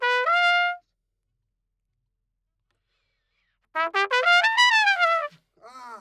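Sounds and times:
trumpet: 0.0 - 0.9, 3.8 - 5.5.

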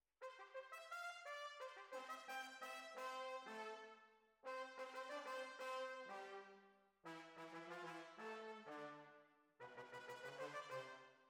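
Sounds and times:
horns: 0.2 - 11.1.

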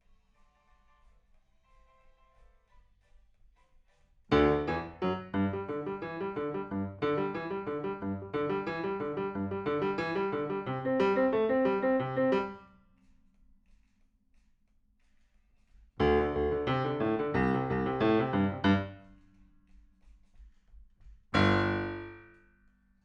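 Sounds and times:
rock and roll piano: 4.3 - 12.6, 16.0 - 19.1, 21.4 - 22.3.

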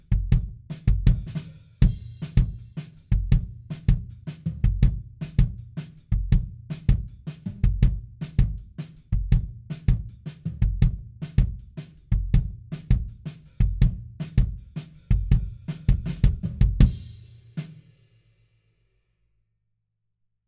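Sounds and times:
kick drum beat: 0.0 - 17.2.

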